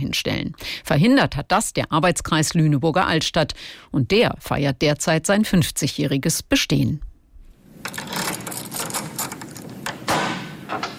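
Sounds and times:
speech: 0.0s - 7.1s
large key unlocking massive wooden door: 7.8s - 10.0s
door bolt clunk: 7.8s - 10.9s.

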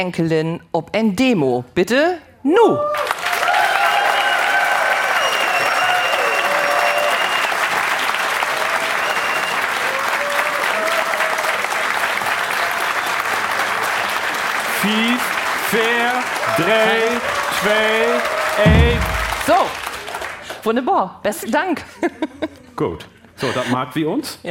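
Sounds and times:
speech: 0.0s - 3.3s, 16.6s - 19.8s, 20.6s - 24.5s
audience applause: 3.0s - 20.6s.

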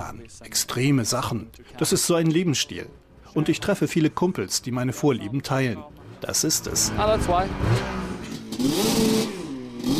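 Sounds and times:
speech: 0.1s - 9.9s
snowmobile engine revving at a watercross race: 6.0s - 9.9s.

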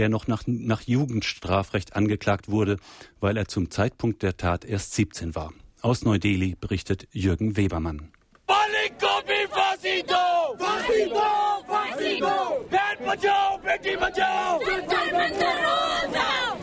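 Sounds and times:
speech: 0.0s - 8.2s, 9.9s - 16.6s
outraged demonstrators shouting outside a juvenile court in New Delhi: 8.4s - 16.6s.

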